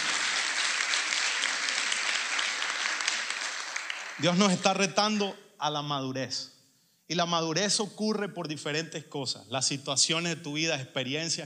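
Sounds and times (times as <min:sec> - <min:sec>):
applause: 0:00.0 - 0:04.8
speech: 0:04.2 - 0:11.4.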